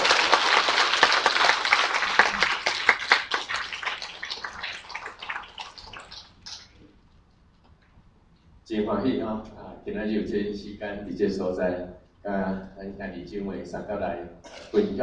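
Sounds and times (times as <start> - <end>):
audience applause: 0.0 - 6.7
speech: 9.0 - 15.0.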